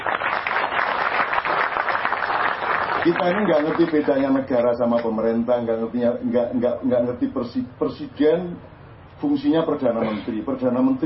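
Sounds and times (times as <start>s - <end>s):
applause for a speaker during a discussion: 0.0s - 4.4s
speech: 3.0s - 11.0s.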